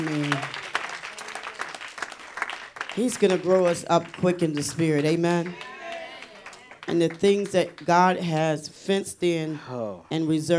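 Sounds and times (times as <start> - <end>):
audience clapping: 0.0 - 8.6
speech: 3.0 - 5.7, 6.9 - 10.5.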